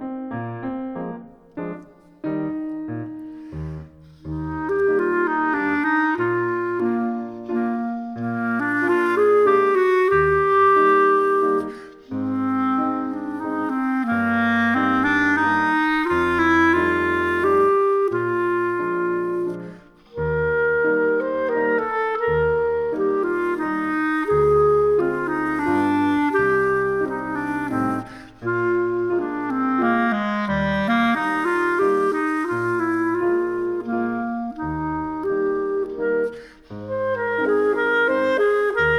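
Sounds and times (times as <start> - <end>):
skilful instrumental solo: 0.3 - 38.9.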